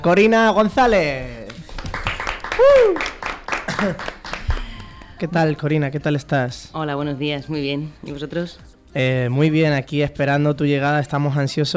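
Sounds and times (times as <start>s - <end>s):
speech: 0.0s - 1.4s, 2.6s - 3.1s, 3.8s - 4.2s, 5.2s - 11.7s
applause welcoming a studio guest: 1.3s - 5.4s.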